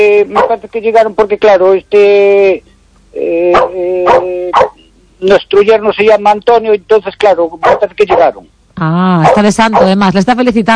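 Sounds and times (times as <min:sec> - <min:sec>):
speech: 0:00.1 - 0:10.7
dog barking loudly as someone arrives: 0:00.4 - 0:00.6, 0:03.5 - 0:04.8, 0:07.6 - 0:08.4, 0:09.2 - 0:10.0.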